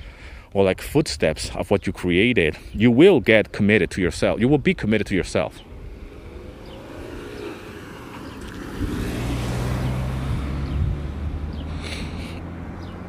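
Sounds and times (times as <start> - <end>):
speech: 0.5 - 5.7
cars driving by outdoors: 4.4 - 13.0.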